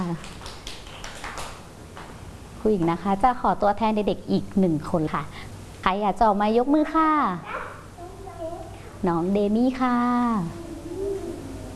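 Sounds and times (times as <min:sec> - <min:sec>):
speech: 0:00.1 - 0:00.4, 0:02.6 - 0:07.5, 0:09.0 - 0:10.6
children clapping hands: 0:00.1 - 0:02.1.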